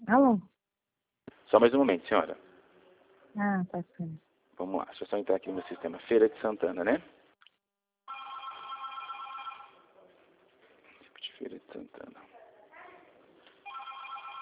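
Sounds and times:
speech: 0.1s - 0.5s, 1.5s - 2.5s, 3.4s - 7.2s, 11.4s - 12.4s
telephone ringing: 8.1s - 9.9s, 13.6s - 14.4s.

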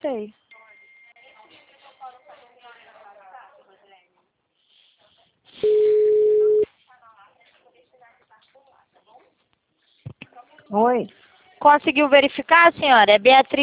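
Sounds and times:
speech: 0.0s - 0.4s, 10.7s - 13.6s
telephone tone after a dropped call: 5.6s - 6.7s.

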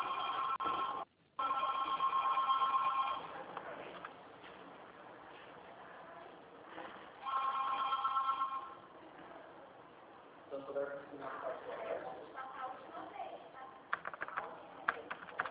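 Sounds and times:
telephone ringing in bright trilling bursts: 0.0s - 3.4s, 7.2s - 8.9s
murky noise: 0.0s - 15.4s.

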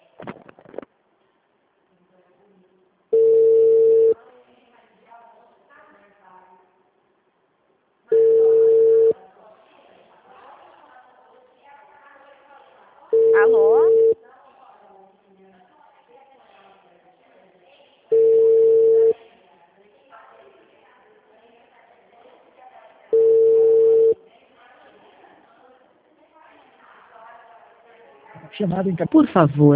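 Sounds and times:
telephone busy tone: 3.1s - 4.2s, 8.1s - 9.2s, 13.1s - 14.2s, 18.1s - 19.2s, 23.1s - 24.2s
speech: 28.6s - 29.7s.

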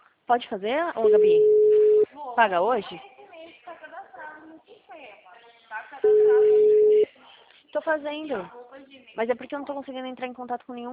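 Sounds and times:
speech: 0.3s - 1.6s, 2.4s - 3.1s, 7.8s - 8.6s, 9.2s - 10.9s
telephone busy tone: 1.0s - 2.0s, 6.0s - 7.1s.

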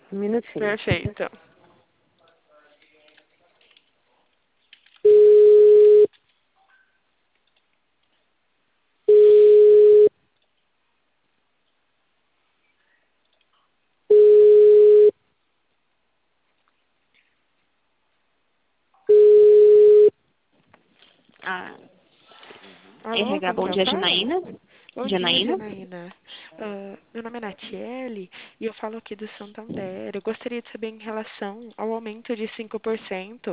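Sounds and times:
speech: 0.1s - 1.5s, 23.2s - 33.5s
telephone line beeps while a call is transferred: 5.1s - 6.1s, 9.1s - 10.1s, 14.1s - 15.1s, 19.1s - 20.1s.

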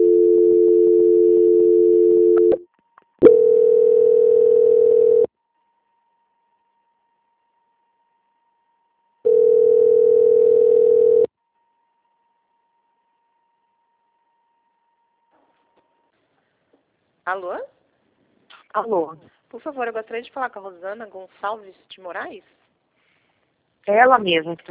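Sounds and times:
telephone line tones during a call transfer: 0.0s - 2.6s, 3.2s - 5.3s, 9.3s - 11.3s
speech: 18.8s - 22.6s, 23.9s - 24.6s.

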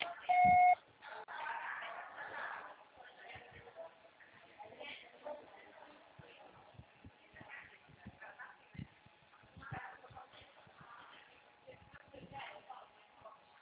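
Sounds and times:
faint indistinct voices: 0.0s - 13.5s
noise: 0.0s - 13.5s
voicemail recording beep: 0.3s - 0.8s.

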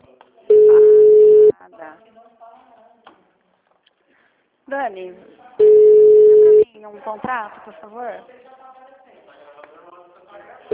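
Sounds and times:
telephone line beep while a call is transferred: 0.5s - 1.5s, 5.6s - 6.6s
speech: 4.7s - 5.8s, 6.8s - 8.4s.

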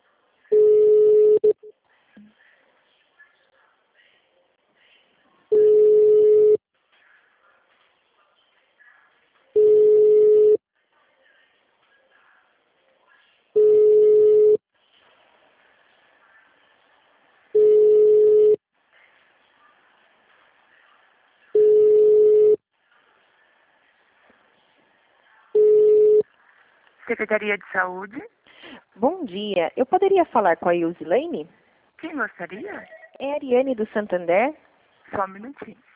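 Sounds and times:
telephone ringback tone of a call to a health department office: 0.5s - 1.7s, 5.5s - 6.6s, 9.6s - 10.6s, 13.6s - 14.6s, 17.6s - 18.6s, 21.6s - 22.6s, 25.6s - 26.2s
speech: 27.1s - 28.4s, 29.0s - 35.9s.

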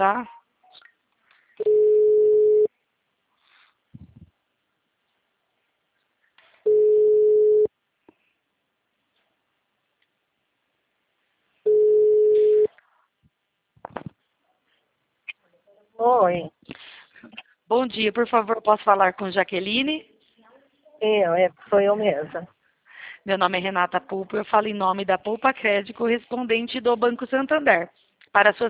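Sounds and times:
speech: 0.0s - 0.4s, 17.8s - 20.1s, 21.0s - 22.6s, 23.2s - 28.6s
telephone line beeps after a dropped call: 1.6s - 2.7s, 6.7s - 7.7s, 11.7s - 12.7s.

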